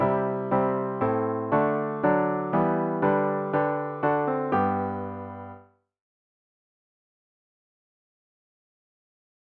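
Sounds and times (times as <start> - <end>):
solo piano: 0.0 - 5.8.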